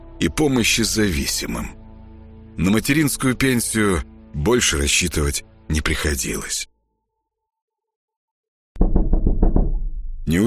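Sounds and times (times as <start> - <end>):
speech: 0.2 - 1.8, 2.6 - 6.7, 10.3 - 10.4
insistent knocking on an apartment door: 8.8 - 10.2.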